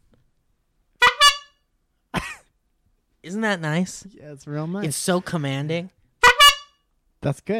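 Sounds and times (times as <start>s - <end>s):
vehicle horn honking: 1.0s - 1.6s, 6.2s - 6.8s
speech: 3.2s - 6.0s, 7.2s - 7.5s.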